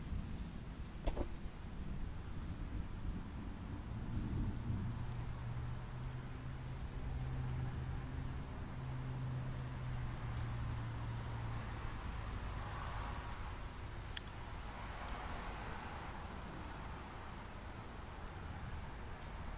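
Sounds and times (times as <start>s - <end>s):
storm rain: 0.0s - 19.5s
faint sharp ticks: 5.0s - 5.2s, 13.7s - 14.4s.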